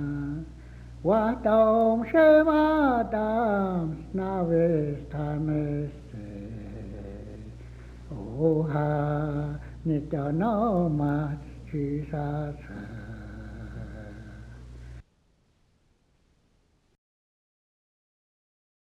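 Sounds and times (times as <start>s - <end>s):
hymnbook songs in Cheyenne: 0.0s - 14.9s.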